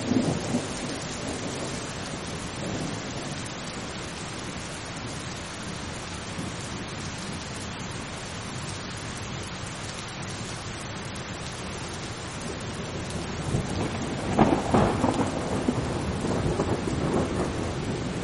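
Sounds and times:
thunder rumbling: 0:00.0 - 0:05.2, 0:12.3 - 0:18.2
rain: 0:00.0 - 0:18.2.

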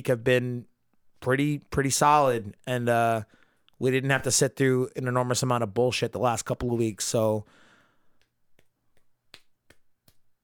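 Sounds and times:
speech: 0:00.0 - 0:07.6
hand clapping: 0:08.2 - 0:10.4.

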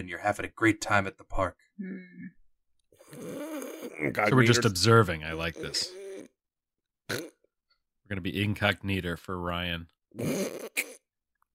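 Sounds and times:
speech: 0:00.0 - 0:02.4, 0:03.1 - 0:06.0, 0:07.1 - 0:07.3, 0:08.1 - 0:11.0
person imitating snoring: 0:03.0 - 0:04.5, 0:05.5 - 0:06.4, 0:10.2 - 0:11.0.

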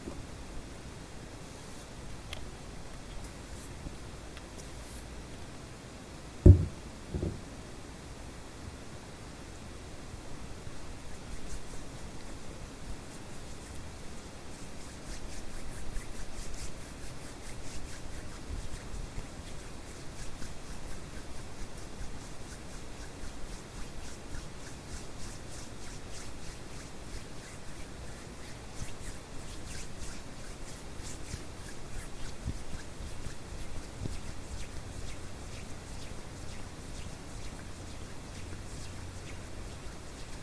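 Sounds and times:
white noise hiss: 0:00.0 - 0:40.4
sharp knock or tap from a hand: 0:06.4 - 0:07.4
soft hands rubbing and crackling: 0:11.1 - 0:12.4, 0:13.0 - 0:40.4.

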